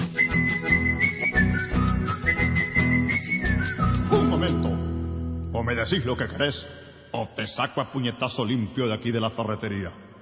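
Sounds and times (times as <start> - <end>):
person whistling: 0.1 - 4.7
speech: 5.8 - 10.1.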